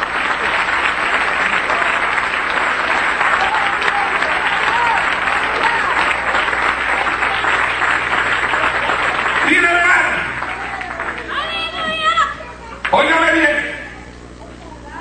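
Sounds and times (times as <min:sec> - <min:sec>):
church congregation applauding: 0:00.0 - 0:13.8
faint cheering voices: 0:01.2 - 0:13.0.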